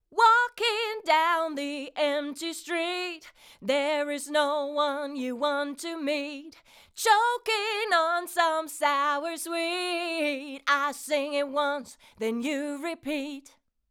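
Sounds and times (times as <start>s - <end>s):
vocals through Rupert Neve Designs 5254: 0.0s - 13.7s.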